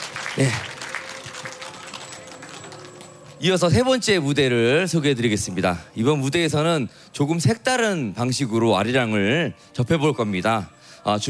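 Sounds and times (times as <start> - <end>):
audience applause for a folk song troupe: 0.0 - 3.4
speech: 0.4 - 0.8, 3.4 - 11.2.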